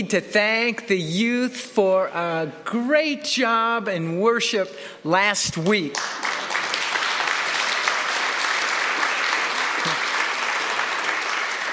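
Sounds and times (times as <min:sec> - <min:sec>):
speech: 0:00.0 - 0:06.3
audience applause: 0:05.9 - 0:11.7.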